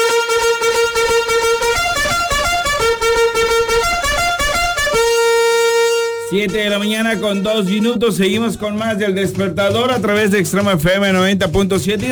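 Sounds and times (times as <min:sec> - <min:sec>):
horn blasts: 0:00.0 - 0:08.6
speech: 0:06.3 - 0:12.0.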